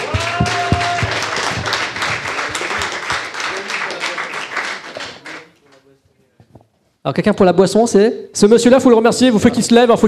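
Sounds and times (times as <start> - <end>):
audience applause: 0.0 - 5.5
speech: 7.1 - 10.0.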